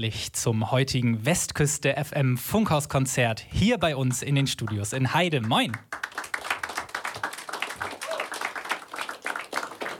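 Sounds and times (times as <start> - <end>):
speech: 0.0 - 6.1
audience applause: 5.5 - 9.9.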